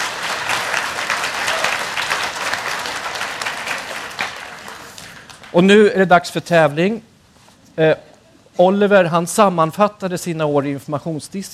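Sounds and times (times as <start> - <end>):
audience applause: 0.0 - 5.6
speech: 5.5 - 7.1, 7.8 - 11.5.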